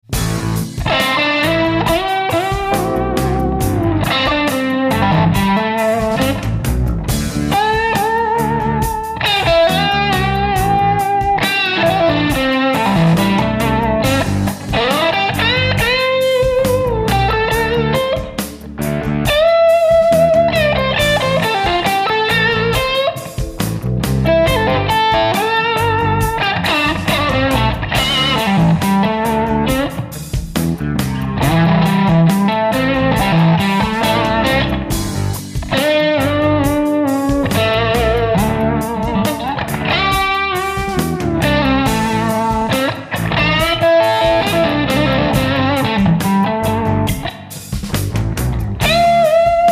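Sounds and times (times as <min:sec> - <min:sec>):
heavy chill music: 0:00.0 - 0:49.7.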